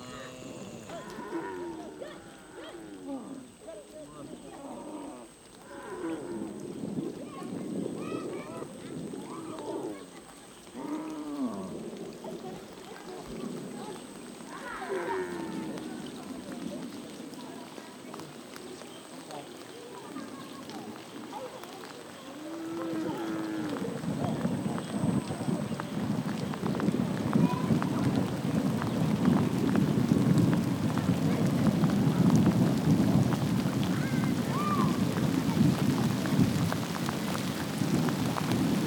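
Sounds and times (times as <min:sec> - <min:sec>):
cows mooing while crossing the Niger River: 0:00.0 - 0:02.1
rushing water and splashing of the Niger River: 0:00.0 - 0:38.8
voices: 0:00.0 - 0:38.8.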